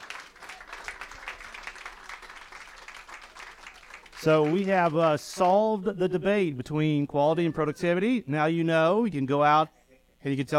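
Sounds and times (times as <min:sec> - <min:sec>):
round of applause: 0:00.0 - 0:05.7
speech: 0:04.2 - 0:10.5.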